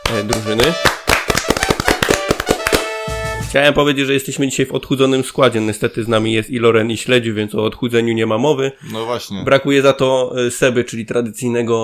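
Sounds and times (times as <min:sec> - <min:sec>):
crowd applause: 0:00.0 - 0:02.9
speech: 0:00.1 - 0:01.0, 0:03.5 - 0:11.8.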